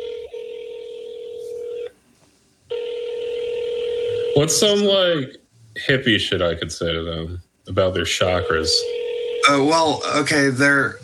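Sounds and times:
phone ringback tone: 0:00.0 - 0:01.9, 0:02.7 - 0:04.6, 0:08.4 - 0:10.0
speech: 0:04.4 - 0:11.0.

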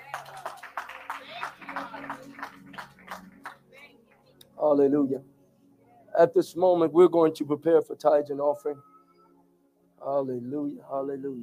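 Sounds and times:
crowd clapping: 0:00.0 - 0:04.2
speech: 0:04.6 - 0:05.3, 0:06.2 - 0:08.9, 0:10.1 - 0:11.4.

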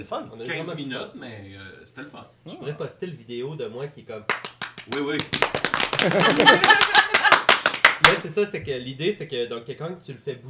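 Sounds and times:
speech: 0:00.0 - 0:07.2, 0:08.0 - 0:10.4
hand clapping: 0:04.3 - 0:08.2
person chattering and laughing: 0:06.0 - 0:07.5.

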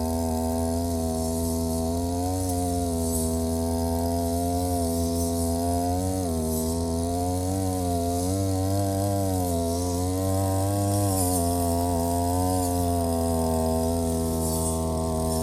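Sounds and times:
brush cutter mowing grass between rows of green onions: 0:00.0 - 0:15.4.

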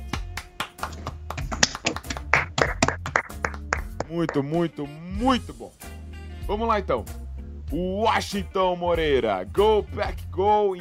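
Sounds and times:
round of applause: 0:00.0 - 0:04.4
speech: 0:04.1 - 0:05.9, 0:06.5 - 0:10.8.

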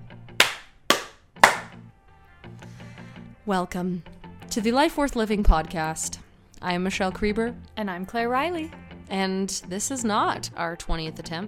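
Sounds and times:
hand claps: 0:00.4 - 0:01.8
speech: 0:03.5 - 0:11.4.

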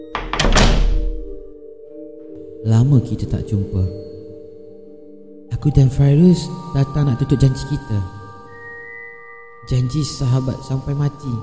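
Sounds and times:
door shut with a heavy booming thud: 0:00.0 - 0:01.5
speech: 0:02.6 - 0:04.1, 0:05.6 - 0:08.2, 0:09.7 - 0:11.4.

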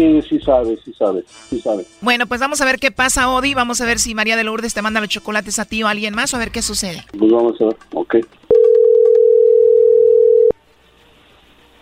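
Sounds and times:
speech: 0:00.0 - 0:08.5
telephone line ringing before a call is answered: 0:08.5 - 0:10.5.

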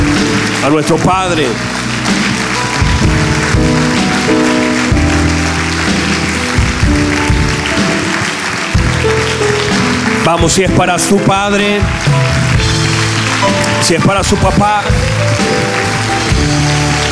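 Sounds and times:
audience applauding: 0:00.0 - 0:17.1
speech: 0:00.6 - 0:01.8, 0:10.3 - 0:12.3, 0:13.4 - 0:15.8.

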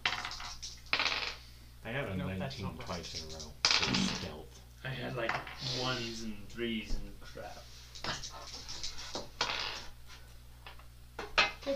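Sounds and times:
dice being rolled: 0:00.0 - 0:01.4, 0:08.6 - 0:09.9
speech: 0:02.1 - 0:08.5.

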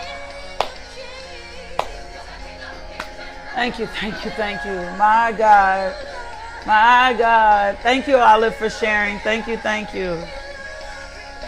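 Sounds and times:
hand claps in praise: 0:00.5 - 0:00.9, 0:01.8 - 0:02.2, 0:03.0 - 0:03.2
speech: 0:03.6 - 0:10.4.

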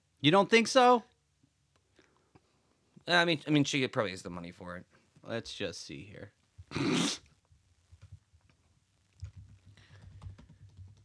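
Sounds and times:
speech: 0:00.2 - 0:01.1, 0:03.1 - 0:07.2
fierce typing on a keyboard: 0:09.2 - 0:11.0.

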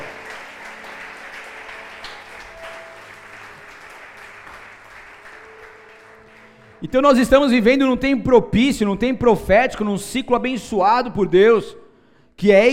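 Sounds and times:
audience applause: 0:00.0 - 0:06.8
speech: 0:06.8 - 0:11.8, 0:12.4 - 0:12.7.

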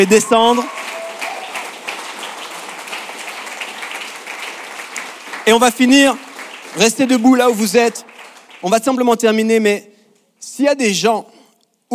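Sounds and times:
speech: 0:00.0 - 0:00.8, 0:05.5 - 0:06.2, 0:06.8 - 0:11.3
crowd applause: 0:00.0 - 0:08.8.

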